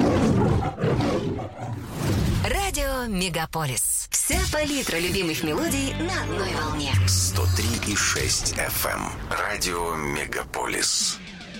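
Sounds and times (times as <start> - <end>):
lion roaring for a film studio logo intro: 0.0 - 2.0
speech: 3.0 - 11.3.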